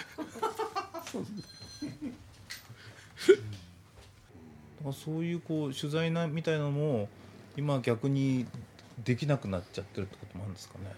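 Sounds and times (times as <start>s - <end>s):
speech: 1.1s - 2.2s, 4.8s - 10.9s
phone ringing: 1.4s - 2.1s.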